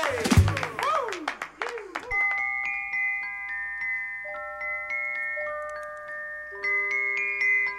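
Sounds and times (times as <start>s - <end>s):
whooping cheers: 0.0s - 2.2s
clapping: 0.0s - 2.4s
bell-like chiming tones: 2.1s - 7.7s.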